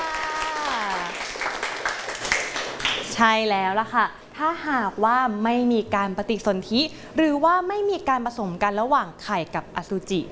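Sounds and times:
classmates clapping for a student: 0.0s - 3.2s
speech: 3.2s - 10.2s.

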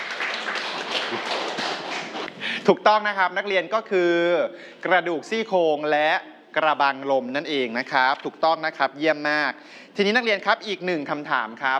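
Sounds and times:
classroom applause for a student: 0.0s - 2.3s
speech: 2.6s - 11.7s.

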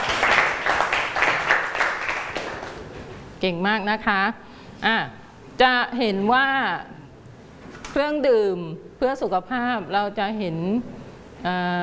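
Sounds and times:
classroom applause for a group: 0.0s - 2.9s
speech: 3.4s - 7.0s, 7.9s - 11.8s.

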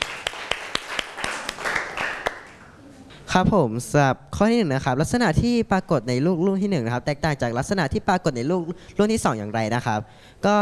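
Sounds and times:
classroom group clapping: 0.0s - 2.8s
speech: 3.3s - 10.6s.

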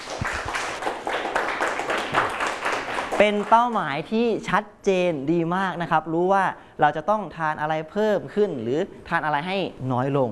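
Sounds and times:
group clapping for a classmate: 0.0s - 4.0s
speech: 3.2s - 10.3s.

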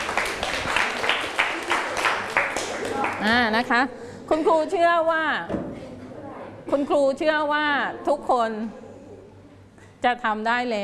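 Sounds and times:
classroom students clapping for a group: 0.0s - 3.4s
speech: 3.2s - 5.6s, 6.6s - 8.8s, 10.0s - 10.8s.

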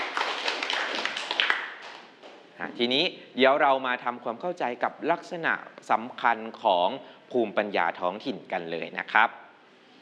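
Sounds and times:
applause with hand clapping: 0.0s - 2.4s
speech: 2.6s - 9.4s.

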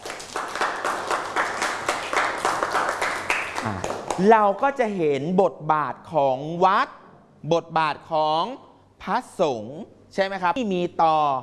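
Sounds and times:
classroom applause: 0.0s - 4.3s
speech: 3.6s - 11.4s.

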